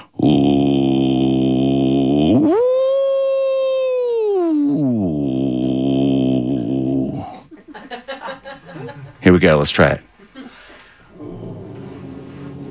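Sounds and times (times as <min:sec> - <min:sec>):
person imitating whale song: 0:00.0 - 0:07.5
speech: 0:00.2 - 0:00.5, 0:09.3 - 0:10.1
laughter: 0:07.3 - 0:09.2.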